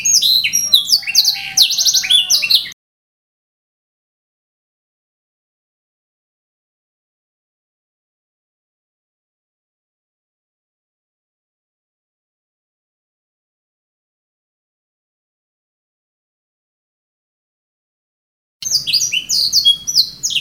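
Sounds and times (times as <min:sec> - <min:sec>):
canary singing: 0:00.0 - 0:02.8, 0:18.6 - 0:20.3.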